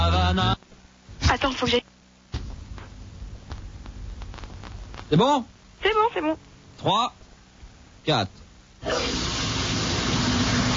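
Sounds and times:
speech: 1.4s - 1.8s, 5.1s - 7.2s, 8.0s - 9.2s
shower water running: 8.8s - 10.7s.

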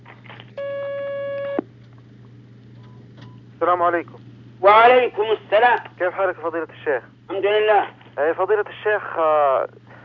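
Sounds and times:
electronic telephone line tone as a phone-in call is taken: 0.6s - 1.6s
speech: 3.6s - 9.8s.

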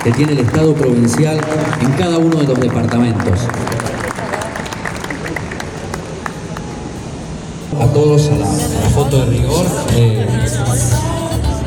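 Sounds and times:
speech: 0.0s - 4.0s, 7.7s - 11.2s
applause: 0.0s - 7.1s.

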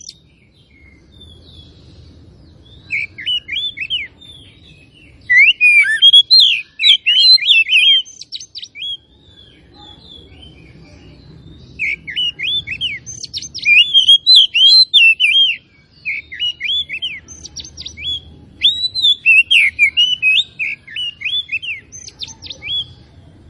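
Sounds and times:
Oriental magpie-robin singing: 0.0s - 0.2s, 2.9s - 4.5s, 5.2s - 9.1s, 11.8s - 22.9s.

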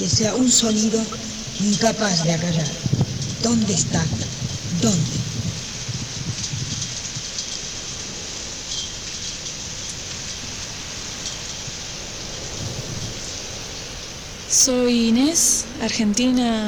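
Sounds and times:
speech: 0.0s - 5.2s, 14.6s - 16.6s
rain falling: 0.0s - 16.6s.

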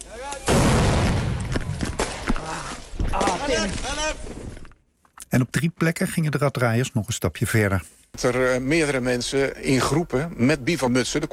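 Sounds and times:
illegal fireworks aimed at emergency workers exploding in Nieuw-Beierland, Netherlands: 0.5s - 2.4s
speech: 3.5s - 4.4s, 5.3s - 11.3s.

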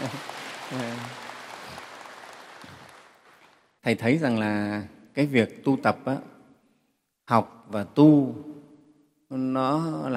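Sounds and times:
applause from an assembly of Buddhist practitioners at a Dharma talk: 0.0s - 3.8s
speech: 0.7s - 1.2s, 3.8s - 6.3s, 7.3s - 8.5s, 9.3s - 10.1s.

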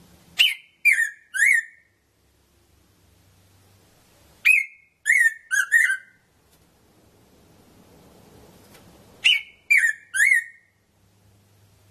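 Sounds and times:
red-throated parrotfinch Erythrura psittacea calling: 0.4s - 2.0s, 4.4s - 6.2s, 9.2s - 10.8s.

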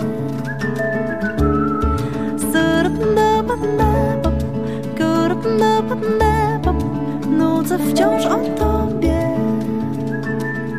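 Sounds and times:
person whistling a melody: 0.0s - 4.1s, 9.8s - 10.7s
instrumental backing with steady bass and chords: 0.0s - 10.7s.

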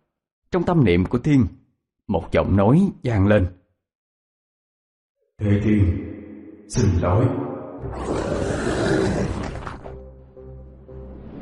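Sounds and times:
speech: 0.5s - 3.6s, 5.4s - 6.1s, 6.7s - 9.2s
thunderous rumbling roar: 7.9s - 9.8s.

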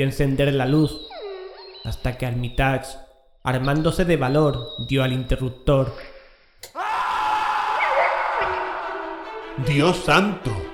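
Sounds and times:
speech: 0.0s - 1.1s, 1.8s - 6.8s, 9.6s - 10.7s
man's shrill sustained scream: 6.7s - 9.3s.

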